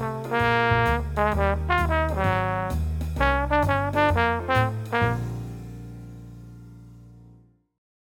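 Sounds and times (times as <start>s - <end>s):
jazz trombone: 0.0s - 6.2s.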